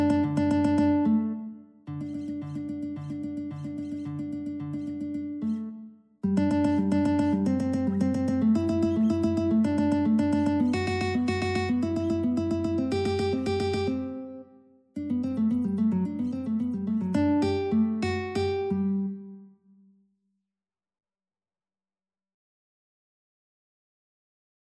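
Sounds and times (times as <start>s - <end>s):
guitar duet: 0.0s - 19.6s.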